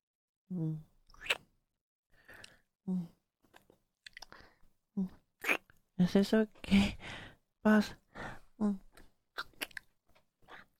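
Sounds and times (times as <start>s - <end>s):
speech: 0.5s - 0.9s, 2.9s - 3.2s, 5.0s - 5.2s, 6.0s - 8.8s
chewing while tasting food: 9.4s - 10.7s.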